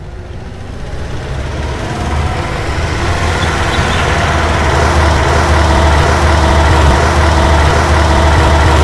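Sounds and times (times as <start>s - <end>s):
bus starting: 0.0s - 8.8s.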